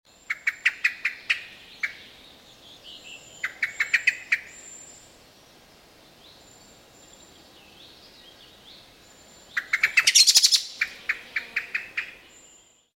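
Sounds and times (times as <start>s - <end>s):
common blackbird chink calls: 0.2s - 2.1s, 3.0s - 5.0s, 9.5s - 12.7s.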